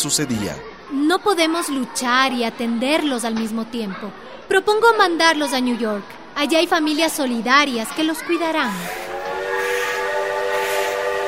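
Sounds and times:
speech: 0:00.0 - 0:09.1
departing train whistle: 0:08.8 - 0:11.2.

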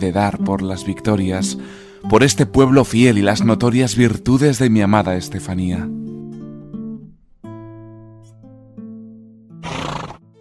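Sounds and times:
speech: 0:00.0 - 0:06.1
horse neighing: 0:09.6 - 0:10.3.

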